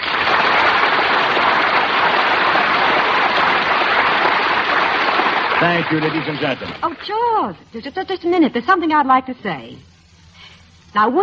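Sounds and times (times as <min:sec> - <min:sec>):
audience applause: 0:00.0 - 0:07.0
speech: 0:05.6 - 0:09.9, 0:10.9 - 0:11.2.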